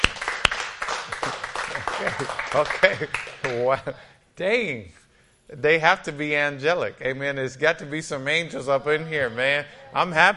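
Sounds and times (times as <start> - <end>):
audience clapping: 0.0 - 3.8
speech: 2.2 - 10.3.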